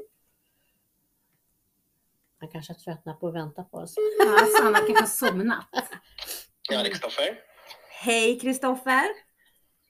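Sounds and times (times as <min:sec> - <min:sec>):
speech: 0:02.5 - 0:09.3
telephone call ringing tone: 0:04.0 - 0:05.1
laughter: 0:04.2 - 0:06.0.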